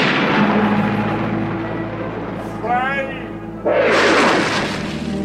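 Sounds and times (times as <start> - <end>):
thunder crash: 0.0 - 2.6, 3.7 - 5.1.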